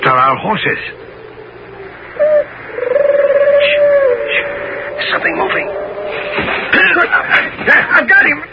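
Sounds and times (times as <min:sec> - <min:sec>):
owl-like hooting calls used as signals: 0:00.6 - 0:06.7
scuffling and rustling: 0:06.1 - 0:08.1.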